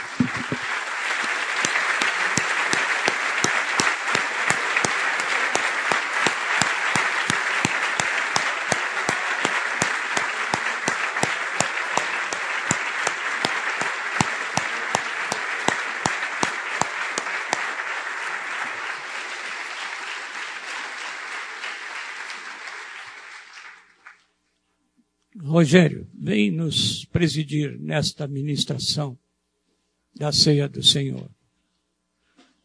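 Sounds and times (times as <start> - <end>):
audience applauding: 0.0 - 24.3
speech: 25.6 - 29.2, 30.2 - 31.4.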